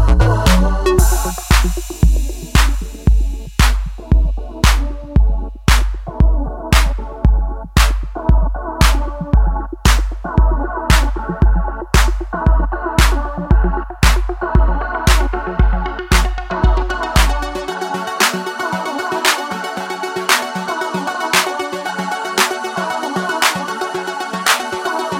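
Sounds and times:
vocal with LFO modulation: 0.0 - 25.1.

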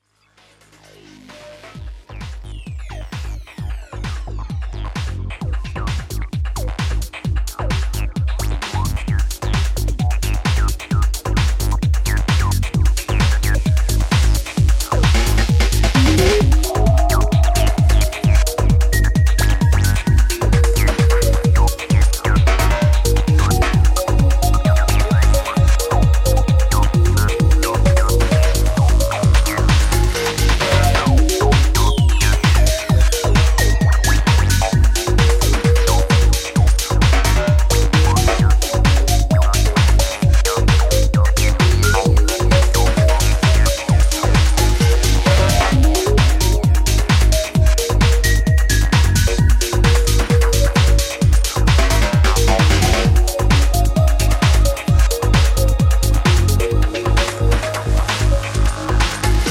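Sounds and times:
bass: 0.0 - 59.5.

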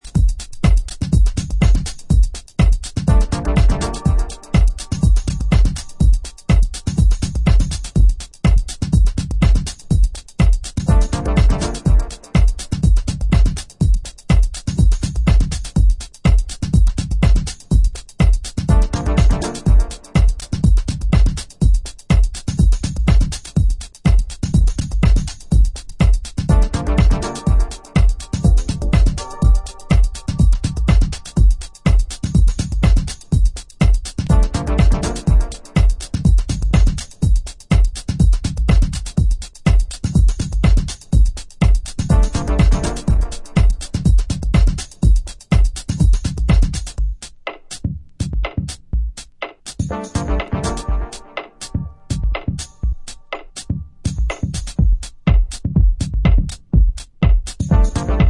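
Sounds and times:
instrumental music: 0.0 - 58.2.

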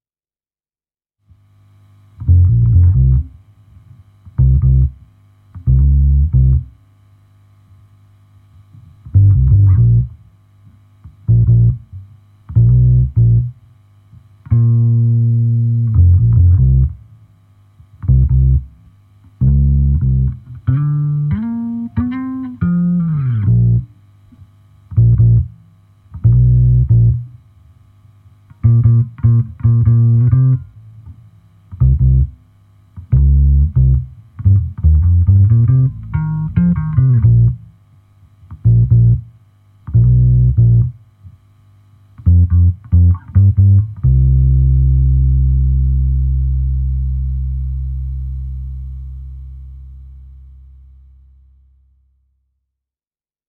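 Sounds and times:
bassline stem: 2.2 - 3.5, 4.2 - 6.8, 8.8 - 10.3, 11.0 - 13.6, 14.4 - 17.2, 17.9 - 24.0, 24.9 - 27.4, 28.5 - 32.4, 33.0 - 37.8, 38.5 - 41.0, 42.2 - 52.0.

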